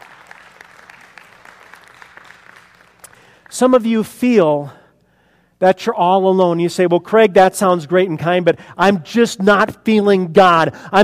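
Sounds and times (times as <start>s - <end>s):
audience clapping: 0.0s - 3.8s
speech: 3.5s - 4.8s, 5.6s - 11.0s.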